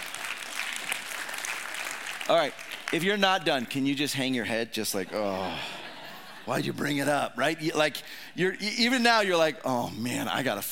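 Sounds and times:
audience applause: 0.0s - 3.2s
speech: 2.3s - 5.8s, 6.4s - 10.7s
laughter: 4.9s - 7.5s.

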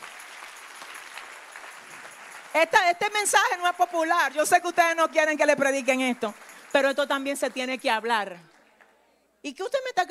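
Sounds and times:
congregation applause during a sermon: 0.0s - 9.0s
speech: 2.5s - 8.5s, 9.4s - 10.0s.

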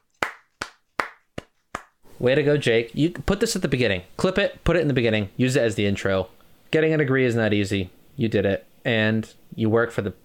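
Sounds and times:
handclaps: 0.0s - 2.0s
speech: 2.2s - 10.2s.

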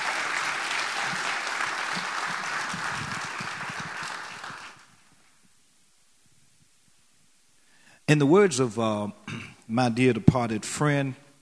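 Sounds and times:
crowd audience applauding: 0.0s - 5.1s
speech: 8.1s - 11.2s.

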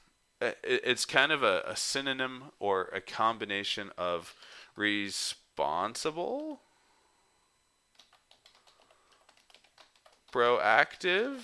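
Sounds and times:
speech: 0.4s - 6.7s, 10.3s - 11.4s
fingers typing a definition on a computer keyboard: 7.9s - 10.4s.

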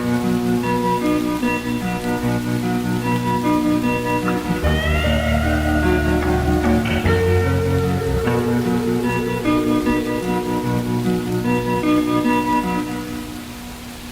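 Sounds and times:
rain on a farm: 0.0s - 14.1s
steady droning tones: 1.0s - 13.4s
brief rising whine: 4.2s - 11.9s
heavier low rumble: 4.4s - 11.2s.

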